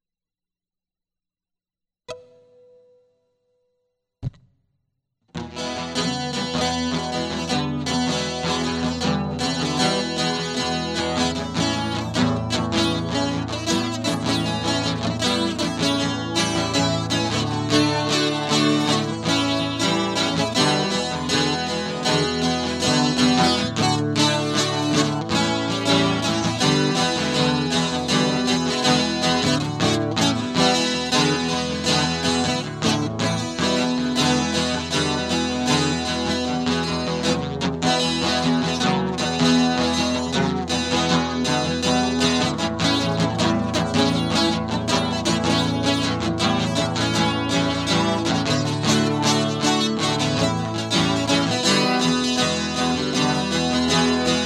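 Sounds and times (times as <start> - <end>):
guitar: 2.1 - 3.5, 4.2 - 4.6, 5.3 - 54.4.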